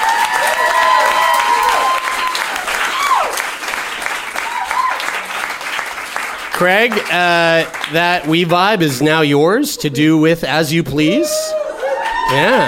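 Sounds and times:
shrill whistles and whoops from audience: 0.0 - 3.4, 11.5 - 12.6
audience clapping: 0.0 - 9.2, 11.8 - 12.6
speech: 6.6 - 11.6, 12.3 - 12.6.

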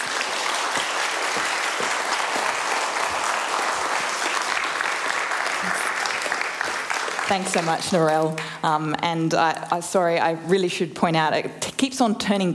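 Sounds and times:
audience applause welcoming a speaker to the stage: 0.0 - 8.4
speech: 7.3 - 12.5.

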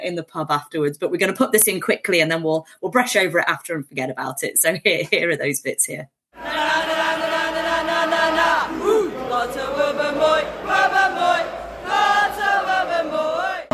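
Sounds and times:
speech: 0.0 - 7.0
football crowd chanting in away end: 6.4 - 13.7.

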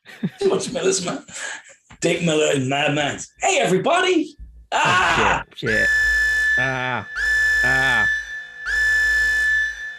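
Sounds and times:
laughter: 0.0 - 1.4
speech: 0.2 - 6.0, 6.6 - 8.1
siren-like electronic tone: 5.7 - 9.9.

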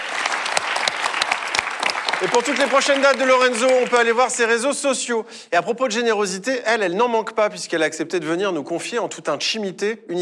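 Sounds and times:
audience applause: 0.0 - 4.4
speech: 2.2 - 10.1.

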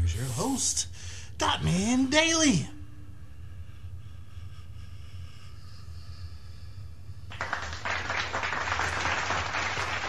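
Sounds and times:
speech: 0.2 - 2.8
golf clap: 7.3 - 10.0.

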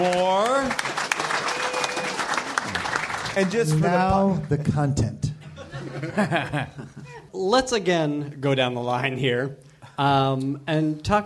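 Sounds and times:
speech: 0.0 - 1.1, 3.4 - 5.3, 6.0 - 11.2
audience applause: 0.0 - 4.6
laughter: 5.4 - 7.3.

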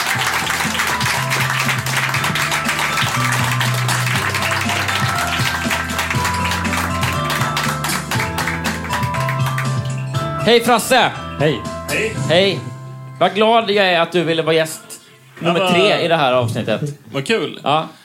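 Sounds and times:
audience applause: 0.0 - 10.1
speech: 10.4 - 14.8, 15.4 - 18.0.

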